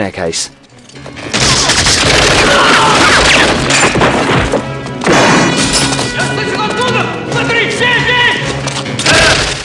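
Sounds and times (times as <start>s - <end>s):
gunfire in a film scene of an attack on a prison: 1.3s - 5.8s
people shouting: 1.6s - 3.6s, 6.0s - 9.6s.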